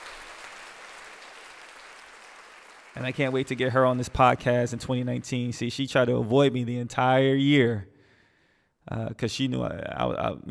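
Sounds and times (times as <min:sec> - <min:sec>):
applause: 0:00.0 - 0:05.8
speech: 0:03.0 - 0:07.9, 0:08.8 - 0:10.5.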